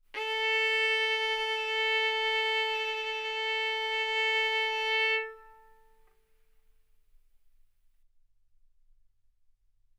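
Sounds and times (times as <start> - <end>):
violin bowed mezzo-forte on the A string, A4 and B4: 0.2 - 6.0.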